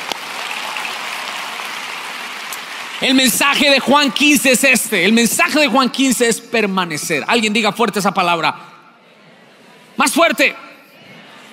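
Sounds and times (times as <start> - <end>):
crowd applauding loudly: 0.0 - 4.3
speech: 3.0 - 8.7, 10.0 - 10.6.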